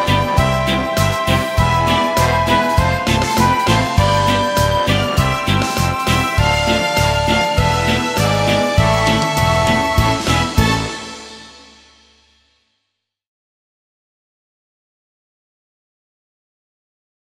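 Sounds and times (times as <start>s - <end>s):
instrumental music: 0.0s - 12.6s.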